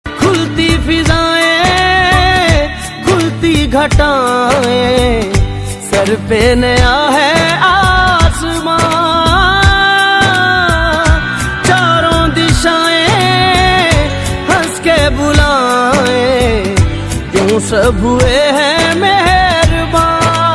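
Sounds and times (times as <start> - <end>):
Hindi ringtone sung by a man: 0.1 - 20.5.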